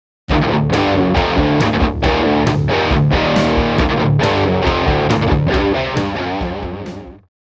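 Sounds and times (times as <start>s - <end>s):
drums: 0.3s - 7.3s.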